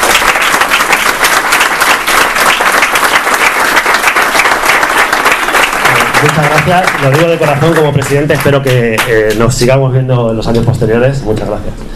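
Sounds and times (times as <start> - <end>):
audience applause: 0.0 - 9.5
speech: 6.4 - 11.9.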